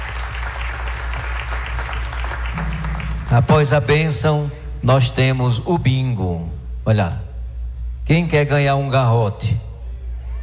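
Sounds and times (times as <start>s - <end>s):
audience applause: 0.0s - 3.1s
speech: 3.3s - 7.2s, 8.1s - 9.6s.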